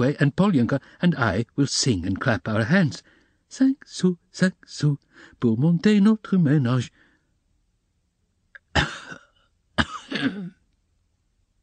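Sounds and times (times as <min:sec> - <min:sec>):
speech: 0:00.0 - 0:07.0, 0:10.2 - 0:10.6
woman coughing: 0:08.7 - 0:10.6.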